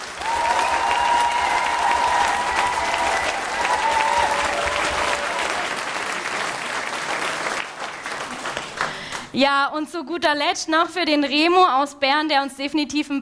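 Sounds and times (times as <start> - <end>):
audience clapping loudly: 0.0 - 9.4
speech: 9.4 - 13.2.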